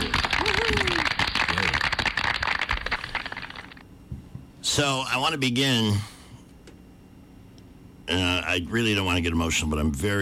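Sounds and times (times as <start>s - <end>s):
audience clapping: 0.0s - 3.8s
speech: 4.8s - 6.1s, 8.1s - 10.2s.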